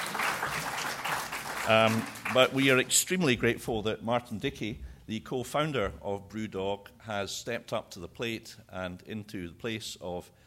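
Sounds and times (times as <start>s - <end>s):
round of applause: 0.0s - 3.1s
speech: 1.6s - 10.4s.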